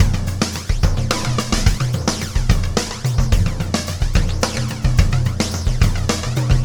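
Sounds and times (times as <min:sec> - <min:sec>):
oscillating beat: 0:00.0 - 0:06.6.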